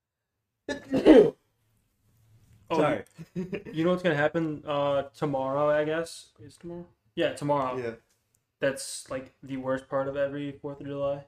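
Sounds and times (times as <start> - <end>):
sneeze: 0.7 - 1.4
speech: 0.9 - 1.4, 2.7 - 11.2.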